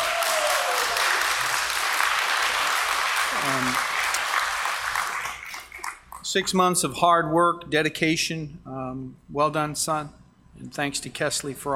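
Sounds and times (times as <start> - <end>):
vocal whoop: 0.0 - 1.2
audience applause: 0.0 - 6.2
speech: 3.4 - 3.9, 6.3 - 11.7.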